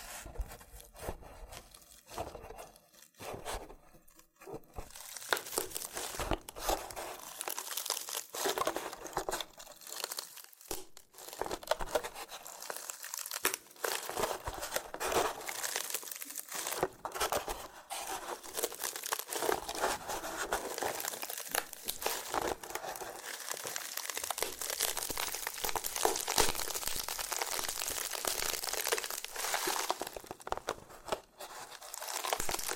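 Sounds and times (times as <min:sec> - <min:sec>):
loofah handled, crinkling and crackling: 0:00.5 - 0:32.7.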